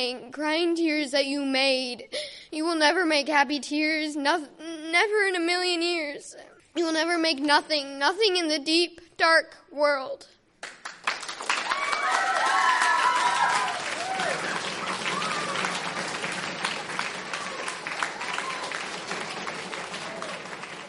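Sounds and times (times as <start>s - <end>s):
speech: 0.0s - 10.8s
soft audience applause: 10.8s - 20.8s
scattered cheers: 11.6s - 20.8s.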